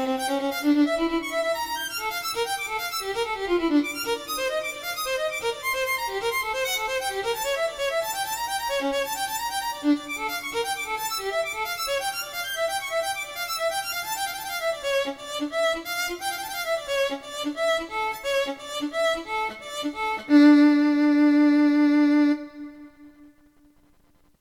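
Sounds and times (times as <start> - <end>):
solo violin sonata in the classic style: 0.0 - 23.5.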